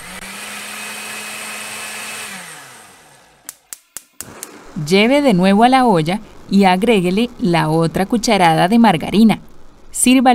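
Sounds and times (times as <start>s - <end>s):
blender pureeing arracacha soup: 0.0s - 3.6s, 4.2s - 7.5s
speech: 4.8s - 10.3s.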